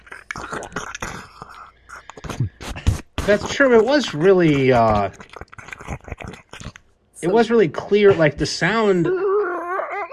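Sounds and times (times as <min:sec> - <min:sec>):
voice imitating the muffled sound of a swallowed microphone: 0:00.0 - 0:10.1
speech: 0:00.4 - 0:00.9, 0:03.3 - 0:05.3, 0:07.2 - 0:09.2.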